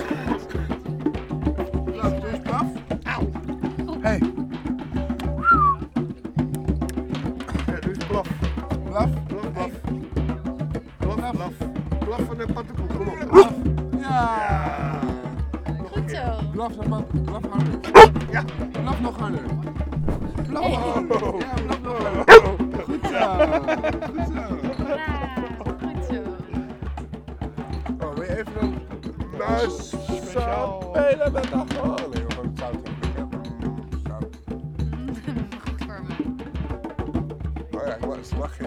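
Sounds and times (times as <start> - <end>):
people talking: 0.0 - 1.0, 1.8 - 4.4, 5.2 - 34.3, 35.0 - 36.3, 37.7 - 38.6
laughter: 0.0 - 16.6, 17.5 - 33.8, 34.8 - 36.4
dog barking and yipping at a microphone: 13.2 - 13.6, 17.9 - 18.4, 22.0 - 22.7.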